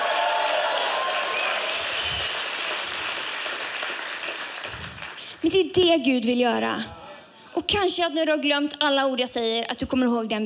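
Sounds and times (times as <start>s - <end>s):
audience applause: 0.0s - 5.3s
speech: 5.4s - 7.0s, 7.7s - 10.4s.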